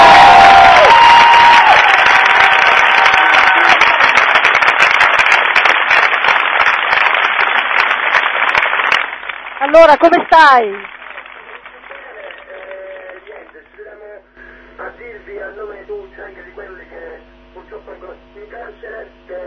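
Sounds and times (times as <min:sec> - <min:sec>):
crowd applause and cheering: 0:00.0 - 0:13.6
speech: 0:09.8 - 0:10.9.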